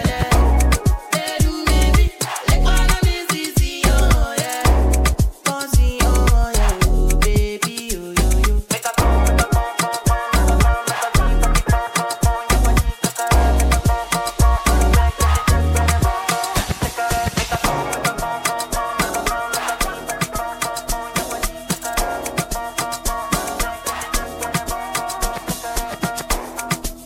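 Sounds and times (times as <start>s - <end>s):
amapiano beat: 0.0s - 27.0s
whistle: 0.3s - 2.5s, 9.4s - 27.0s.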